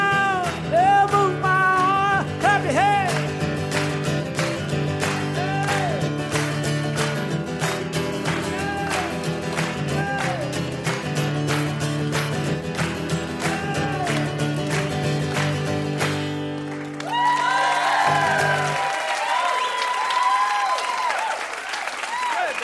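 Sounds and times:
audience clapping in rhythm: 0.0s - 22.6s
loud sustained applause: 2.5s - 22.6s
crowd cheering: 2.6s - 6.2s, 7.6s - 11.6s, 12.7s - 22.6s
whistling: 19.4s - 20.1s.

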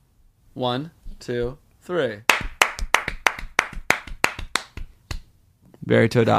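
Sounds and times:
speech: 0.6s - 2.3s, 5.9s - 6.3s
two people clapping hands: 2.3s - 5.3s.

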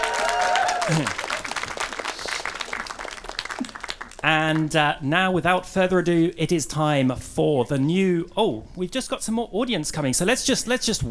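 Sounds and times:
audience applause: 0.0s - 4.7s
speech: 0.9s - 1.2s, 4.2s - 11.1s.

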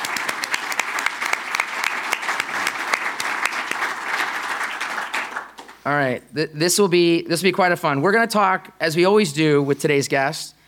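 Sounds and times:
studio audience applause: 0.0s - 5.8s
speech: 5.8s - 10.6s.

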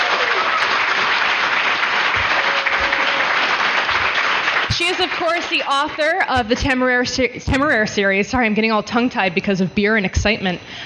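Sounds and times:
applause: 0.0s - 6.3s
speech: 4.8s - 10.8s.

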